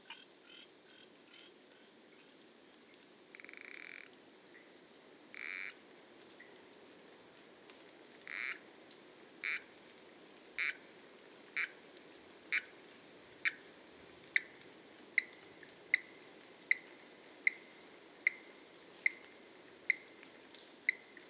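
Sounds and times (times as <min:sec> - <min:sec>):
frogs croaking: 0:00.0 - 0:01.6, 0:03.3 - 0:04.1, 0:05.3 - 0:05.8, 0:08.3 - 0:08.6, 0:09.4 - 0:09.7, 0:10.6 - 0:11.9, 0:12.5 - 0:21.2
background hiss: 0:00.0 - 0:21.2.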